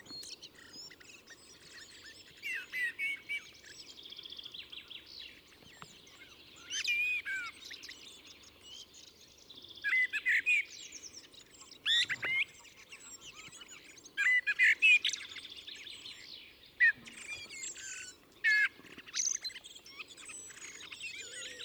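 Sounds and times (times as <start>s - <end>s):
faint high bird chatter: 0.0s - 21.6s.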